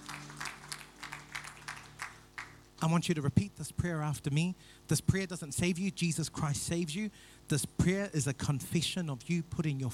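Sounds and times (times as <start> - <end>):
church audience clapping in a steady rhythm: 0.0 - 2.9
low steady hum: 0.0 - 9.9
speech: 2.8 - 9.9.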